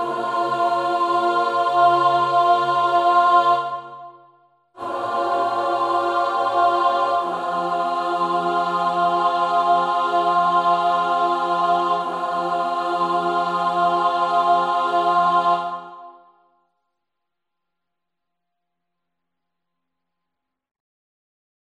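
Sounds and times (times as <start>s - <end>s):
contralto singing: 0.0s - 4.1s, 4.8s - 16.1s.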